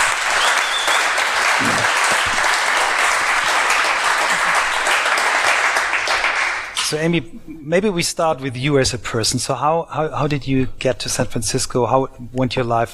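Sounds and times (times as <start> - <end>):
audience applause: 0.0 - 6.8
speech: 6.9 - 12.9.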